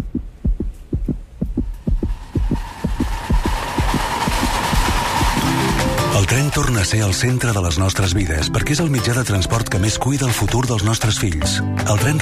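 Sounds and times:
fetal heartbeat on ultrasound monitor: 0:00.0 - 0:05.6
pulsing whooshing wash on ultrasound monitor: 0:01.6 - 0:07.2
speech: 0:06.6 - 0:12.1.

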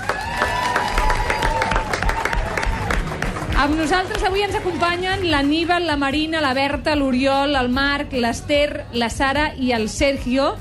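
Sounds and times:
scattered cheers: 0:00.0 - 0:03.5
crowd clapping: 0:00.0 - 0:06.2
speech: 0:03.6 - 0:10.5.

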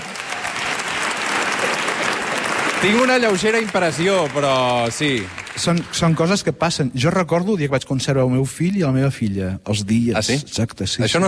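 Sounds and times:
audience applause: 0:00.0 - 0:06.7
speech: 0:02.8 - 0:11.2.

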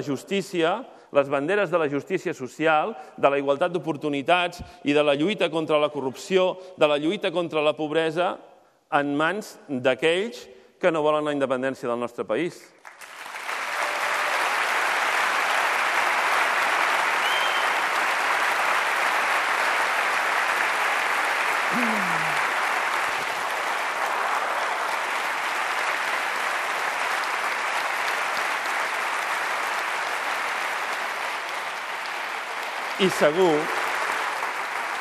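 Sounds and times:
speech: 0:00.0 - 0:13.1, 0:33.0 - 0:33.8
audience applause: 0:12.8 - 0:35.0.

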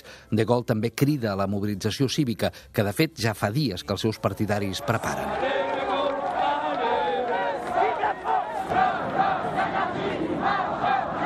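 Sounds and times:
speech: 0:00.3 - 0:05.8
crowd chanting at a political demonstration: 0:04.4 - 0:11.2.

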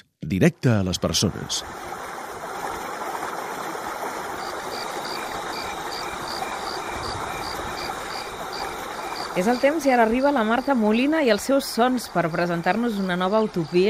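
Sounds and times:
speech: 0:00.2 - 0:02.0, 0:09.4 - 0:13.8
insects buzzing in the Sivans woods: 0:03.9 - 0:13.8
cricket chirping: 0:04.4 - 0:13.8.

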